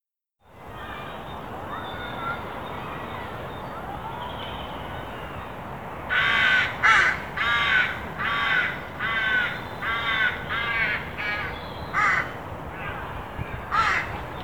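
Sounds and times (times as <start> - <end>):
Carrion crow Corvus corone cawing: 6.1 - 13.1, 13.7 - 14.2.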